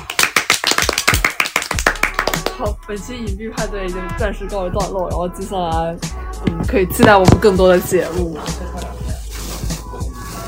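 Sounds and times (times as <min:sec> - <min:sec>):
hand clapping: 0:00.0 - 0:02.7
speech: 0:02.6 - 0:09.0.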